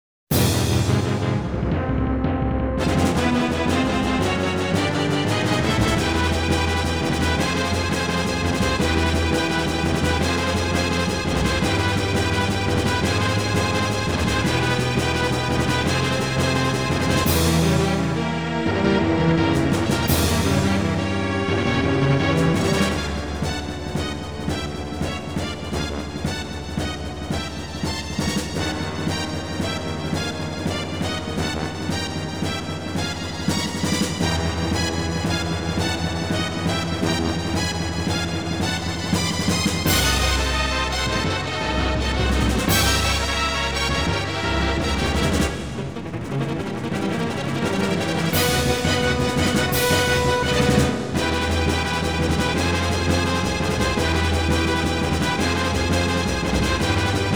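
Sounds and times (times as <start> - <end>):
triumphant brass: 0.3 - 57.3.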